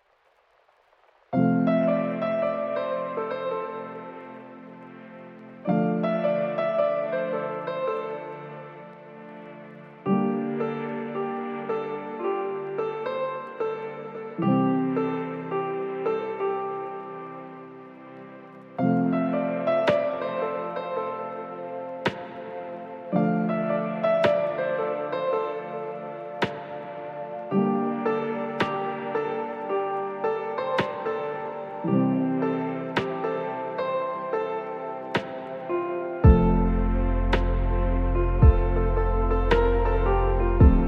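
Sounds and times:
lo-fi instrumental music: 1.4s - 40.8s.

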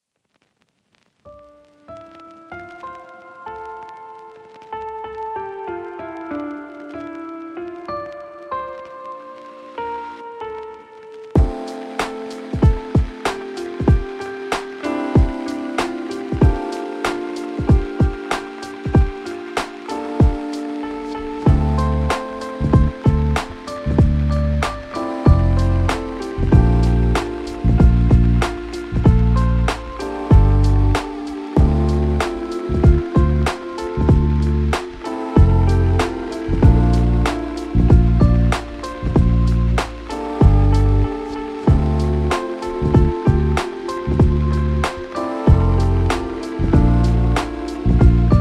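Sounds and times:
instrumental lofi music: 0.3s - 48.4s.

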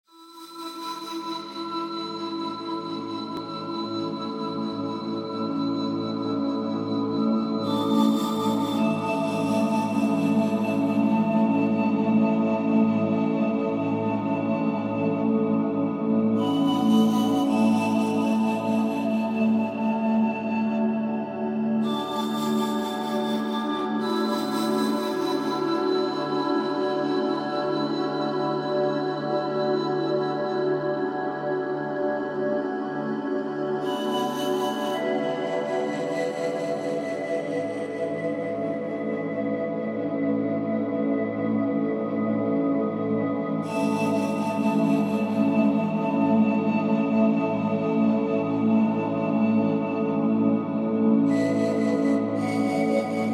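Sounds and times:
spa flutes: 0.2s - 53.3s.

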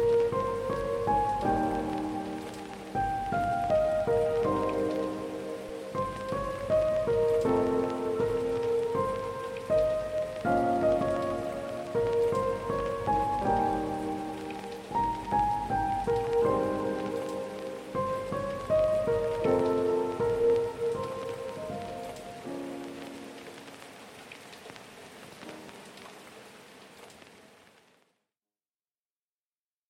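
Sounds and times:
instrumental lofi music: 0.0s - 23.8s.

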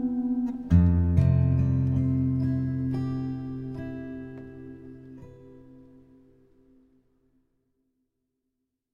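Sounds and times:
acoustic instrumental solo: 0.0s - 6.8s.

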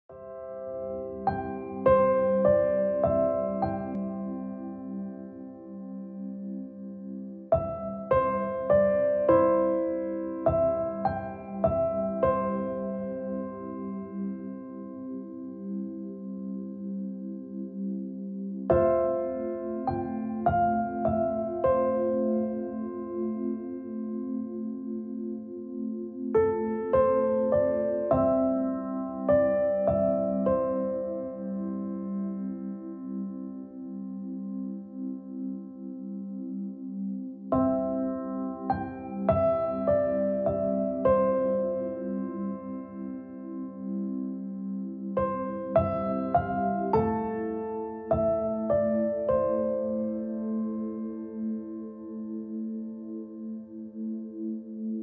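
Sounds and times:
relaxing piano: 0.0s - 55.0s.

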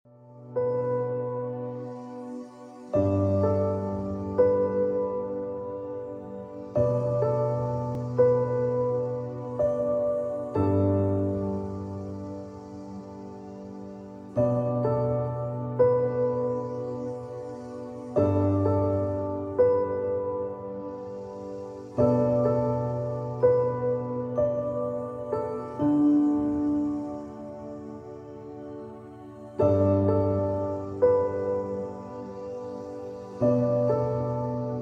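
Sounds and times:
relaxing piano: 0.1s - 34.8s.

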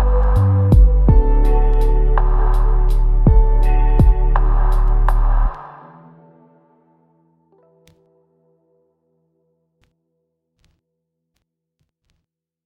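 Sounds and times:
instrumental lofi music: 0.0s - 10.0s.

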